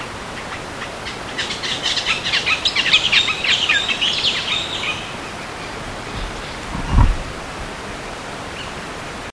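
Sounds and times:
background hiss: 0.0s - 9.3s
bird chirps and twitters: 0.4s - 6.7s
low thump: 6.2s - 7.3s.

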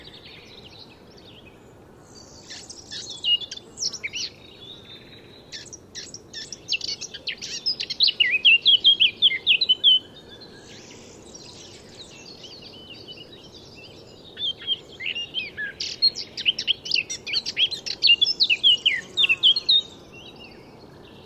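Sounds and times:
Eurasian blackcap warbling: 2.2s - 12.6s, 14.4s - 20.0s.

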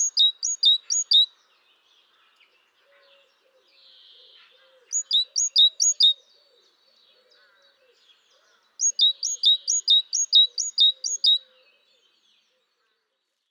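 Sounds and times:
great tit song: 0.0s - 1.3s, 8.8s - 11.4s.

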